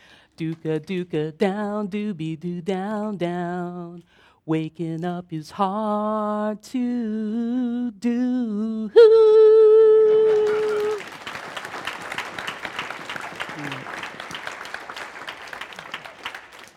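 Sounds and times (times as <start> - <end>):
speech: 0.4 - 9.9
audience clapping: 10.0 - 16.7.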